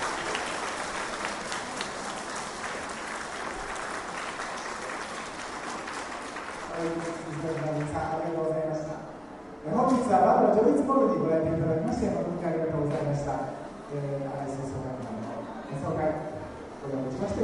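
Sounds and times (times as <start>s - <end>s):
audience applause: 0.0s - 8.1s
speech: 9.6s - 17.4s.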